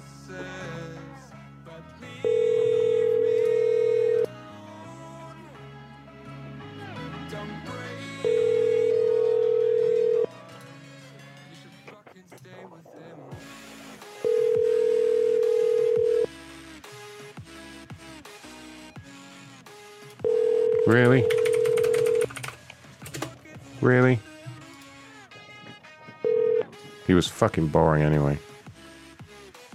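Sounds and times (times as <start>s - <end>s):
music: 0.0s - 29.7s
telephone line tone: 2.2s - 4.3s, 8.2s - 10.3s, 14.2s - 16.3s, 20.2s - 22.3s, 26.2s - 26.8s
speech: 20.9s - 21.4s, 27.2s - 28.5s.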